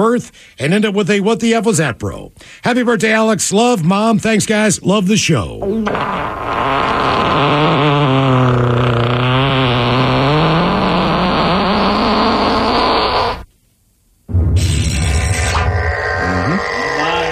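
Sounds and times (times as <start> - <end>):
speech: 0.0 - 7.8
fart sound effect: 5.6 - 13.5, 14.3 - 17.3.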